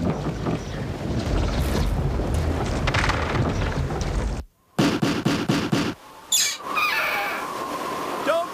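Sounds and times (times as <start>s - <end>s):
wind and water roaring: 0.0s - 8.5s
high wavering creak: 6.3s - 7.5s.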